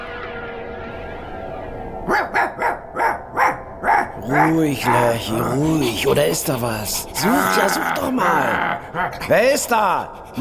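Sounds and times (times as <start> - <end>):
dog barking: 2.1 - 4.6
speech: 4.3 - 10.3.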